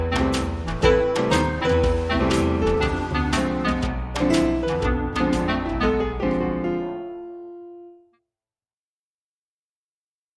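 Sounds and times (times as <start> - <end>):
blues music: 0.0 - 8.1.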